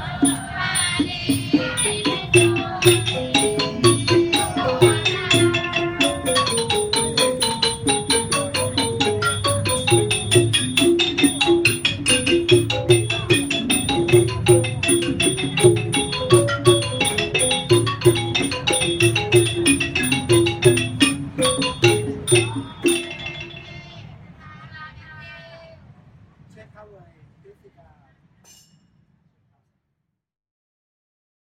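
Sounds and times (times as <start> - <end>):
Buddhist chanting at Shishi Chan Temple: 0.0 - 6.9, 21.7 - 25.8
steady regular percussive beat: 0.0 - 24.0.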